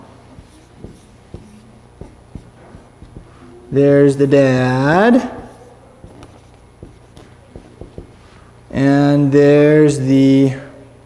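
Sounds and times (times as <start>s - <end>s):
pen strokes scratching across paper while sketching: 0.3s - 3.4s, 5.1s - 8.3s
speech: 3.7s - 5.4s, 8.8s - 10.6s.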